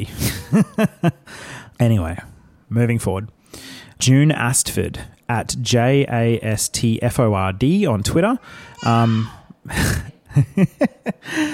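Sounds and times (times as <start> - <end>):
speech: 0.0 - 11.5
baby girl yelling: 8.7 - 9.6.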